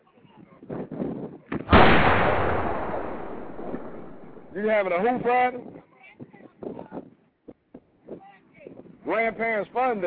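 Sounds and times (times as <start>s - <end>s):
gunshot sound effect: 1.7s - 4.8s
speech: 4.6s - 5.8s, 9.2s - 10.0s.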